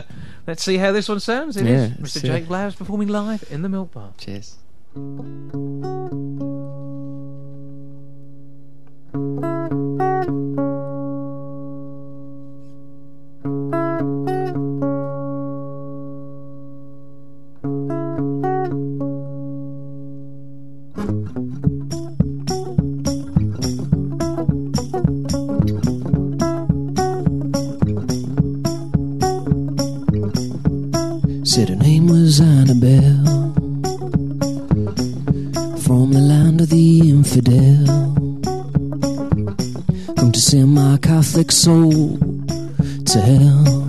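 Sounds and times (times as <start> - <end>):
acoustic guitar playing song intro: 0.0 - 3.9, 4.6 - 43.8
speech: 0.5 - 6.5, 41.6 - 42.2.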